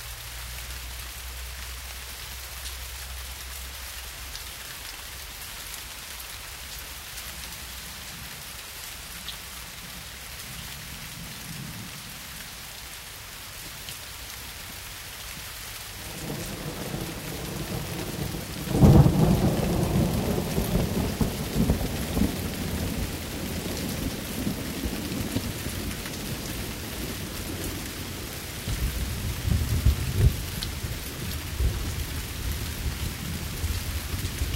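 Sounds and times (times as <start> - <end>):
thunderstorm: 16.0 - 34.5.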